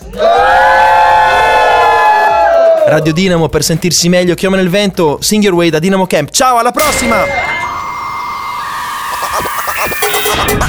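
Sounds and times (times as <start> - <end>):
crowd roaring and cheering: 0.0 - 3.2, 6.8 - 10.6
speech: 2.9 - 7.6.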